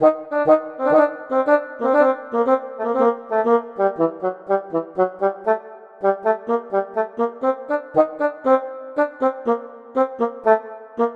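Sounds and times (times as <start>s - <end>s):
oboe: 0.0s - 11.1s.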